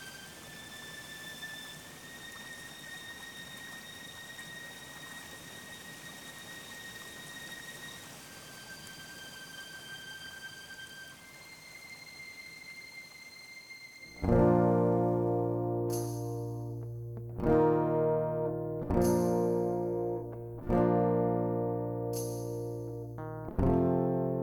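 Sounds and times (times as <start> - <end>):
orchestral backing music: 10.2 - 24.4.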